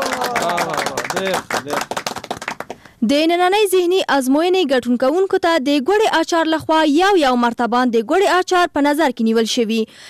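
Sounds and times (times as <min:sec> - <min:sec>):
studio audience clapping on a Pashto quiz show: 0:00.0 - 0:03.0
speech: 0:01.2 - 0:02.0, 0:03.0 - 0:10.0.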